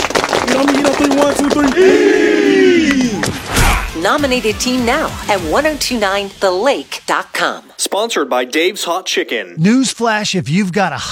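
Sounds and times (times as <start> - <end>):
football team clapping in unison: 0.0 - 3.4
speech: 0.6 - 2.6, 4.0 - 11.1
team shouting: 1.6 - 4.0
voices chanting: 1.7 - 5.4.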